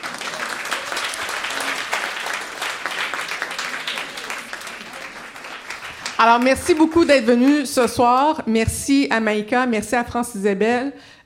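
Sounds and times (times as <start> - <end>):
audience applause: 0.0 - 7.7
speech: 6.2 - 11.2.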